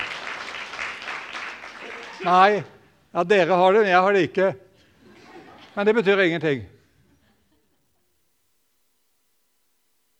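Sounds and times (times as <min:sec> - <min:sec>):
audience applause: 0:00.0 - 0:02.6
speech: 0:02.2 - 0:04.6, 0:05.8 - 0:06.8.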